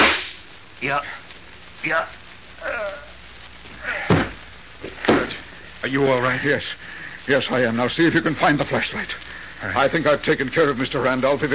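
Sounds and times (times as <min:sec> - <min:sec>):
gunshots in a radio drama: 0:00.0 - 0:00.4
speech: 0:00.8 - 0:01.2, 0:01.8 - 0:02.7, 0:05.8 - 0:11.5.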